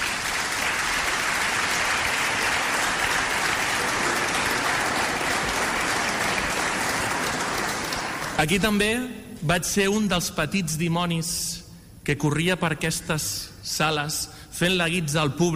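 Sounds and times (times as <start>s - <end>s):
audience applause: 0.0s - 8.5s
speech: 8.4s - 15.5s.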